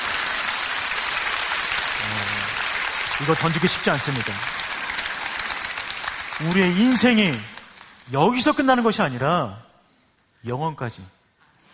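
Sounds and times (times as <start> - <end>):
audience applause: 0.0 - 8.8
speech: 3.2 - 4.7, 6.4 - 7.5, 8.1 - 9.7, 10.4 - 11.2.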